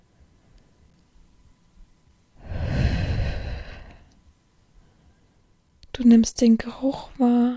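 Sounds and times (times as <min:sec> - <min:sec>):
breathy exhale: 0:02.4 - 0:04.1
speech: 0:06.0 - 0:07.5.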